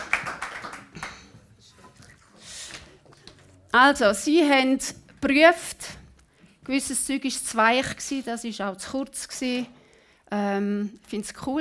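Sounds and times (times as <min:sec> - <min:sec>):
audience applause: 0:00.0 - 0:01.5
speech: 0:03.7 - 0:05.8, 0:06.7 - 0:11.5.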